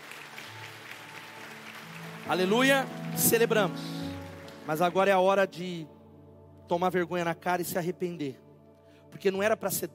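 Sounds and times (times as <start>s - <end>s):
audience applause: 0.0s - 5.0s
speech: 2.2s - 4.0s, 4.7s - 5.9s, 6.7s - 8.4s, 9.1s - 9.9s.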